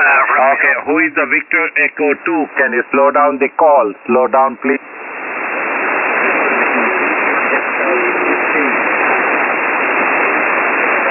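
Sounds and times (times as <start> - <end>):
faint garbled voice on amateur radio: 0.0 - 4.8, 6.3 - 9.4
speech: 0.0 - 4.9
weak amateur radio signal in narrow-band hiss: 0.0 - 11.0.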